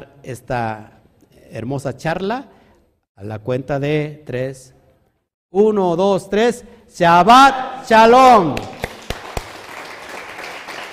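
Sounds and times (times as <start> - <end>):
speech: 0.0 - 2.6, 3.2 - 4.8, 5.5 - 8.7
sharp claps: 8.4 - 10.9
crowd applause: 8.6 - 10.9.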